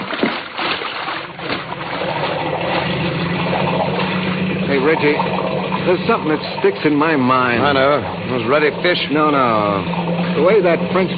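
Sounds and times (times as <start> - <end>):
boat motor heading back downstream: 0.0 - 11.1
speech: 4.9 - 11.1.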